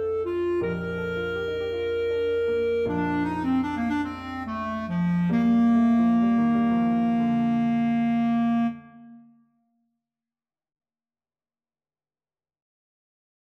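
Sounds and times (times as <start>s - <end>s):
clarinet: 0.0s - 9.5s.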